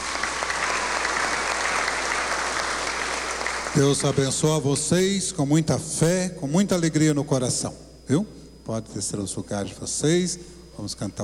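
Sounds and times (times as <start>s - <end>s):
applause for the children: 0.0s - 4.4s
speech: 3.7s - 11.2s.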